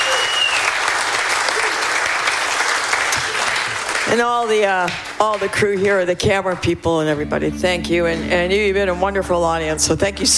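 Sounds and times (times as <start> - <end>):
audience applause for the sound crew: 0.0 - 5.5
speech: 4.1 - 10.3.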